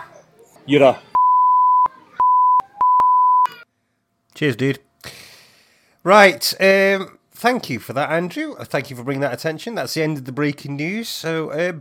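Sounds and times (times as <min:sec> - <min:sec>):
speech: 0:00.7 - 0:01.1, 0:04.4 - 0:04.9, 0:06.0 - 0:11.7
beat machine high-pitched electronic beep: 0:01.2 - 0:03.6.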